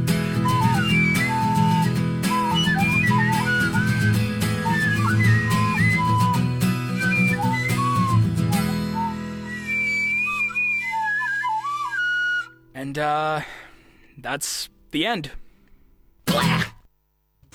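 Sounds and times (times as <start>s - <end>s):
flute playing: 0.3s - 12.6s
speech: 13.0s - 13.6s, 14.2s - 15.4s, 16.3s - 16.7s.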